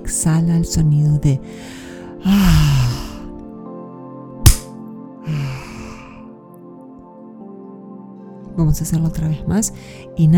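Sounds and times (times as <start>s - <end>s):
speech: 0.1s - 3.0s, 8.6s - 10.3s
single hand clap: 4.5s - 4.7s.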